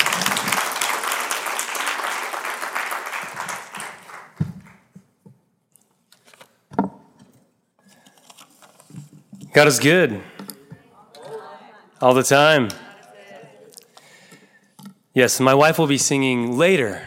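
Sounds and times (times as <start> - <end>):
crowd applause welcoming speaker: 0.0 - 4.8
speech: 9.6 - 10.3, 12.0 - 12.8, 15.2 - 17.0.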